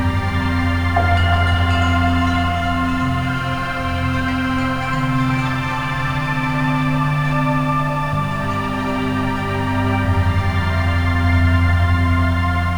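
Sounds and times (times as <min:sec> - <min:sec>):
ambient sound: 0:00.1 - 0:12.7
Rife frequency harmonic tones: 0:01.0 - 0:08.0.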